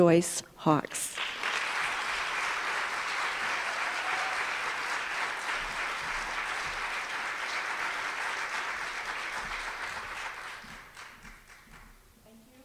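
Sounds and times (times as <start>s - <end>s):
speech: 0.0s - 1.3s
audience applause welcoming a speaker at a workshop event: 1.1s - 12.0s.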